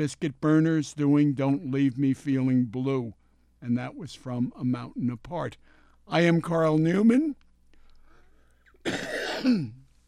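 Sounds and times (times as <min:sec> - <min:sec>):
speech: 0:00.0 - 0:07.4, 0:08.8 - 0:09.8
radio host clearing his throat at the microphone: 0:08.8 - 0:09.8.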